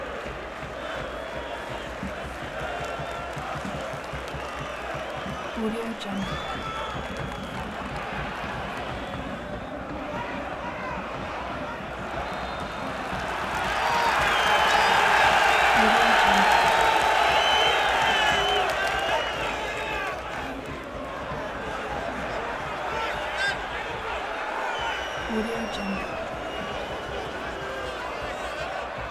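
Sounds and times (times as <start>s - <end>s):
football stadium crowd: 0.0s - 29.1s.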